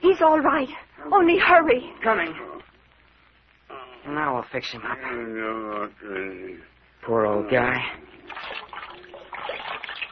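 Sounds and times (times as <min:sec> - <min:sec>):
speech: 0:00.2 - 0:02.5, 0:04.0 - 0:08.6
cold water pouring and splashing: 0:08.2 - 0:10.0.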